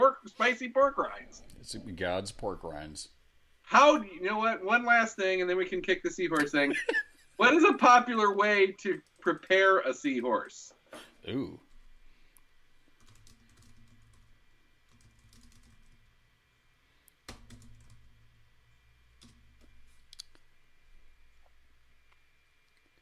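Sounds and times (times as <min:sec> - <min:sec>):
speech: 0:00.4 - 0:11.6
laughter: 0:06.4 - 0:07.2
typing on a computer keyboard while entering a web search: 0:13.0 - 0:14.3, 0:14.9 - 0:16.1, 0:17.2 - 0:18.2, 0:19.2 - 0:20.3.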